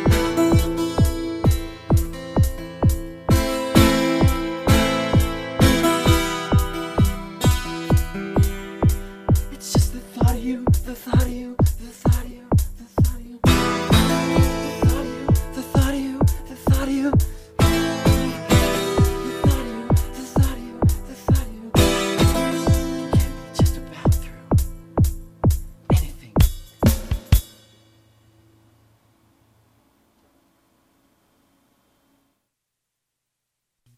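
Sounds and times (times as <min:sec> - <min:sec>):
bass playing: 0:00.0 - 0:10.9, 0:13.4 - 0:26.6
one-man band playing in concert: 0:00.0 - 0:27.6.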